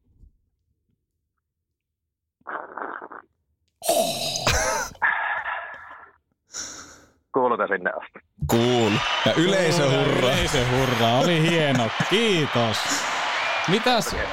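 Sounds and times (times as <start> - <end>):
person slurping coffee: 2.4 - 4.6
speech: 7.4 - 14.3
laughter: 8.5 - 14.3.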